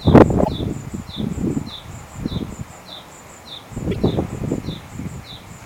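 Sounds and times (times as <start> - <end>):
great tit: 0.2 - 1.3, 3.5 - 4.8.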